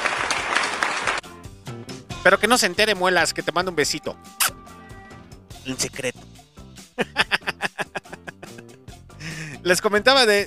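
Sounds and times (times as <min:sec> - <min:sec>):
applause: 0:00.0 - 0:01.3
speech: 0:02.2 - 0:04.5, 0:05.6 - 0:06.3, 0:07.0 - 0:07.2, 0:09.6 - 0:10.4
laughter: 0:07.0 - 0:09.6.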